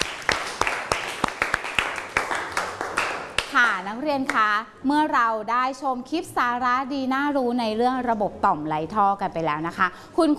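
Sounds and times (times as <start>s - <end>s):
sparse applause from a small group: 0.0s - 3.5s
speech: 3.6s - 10.3s.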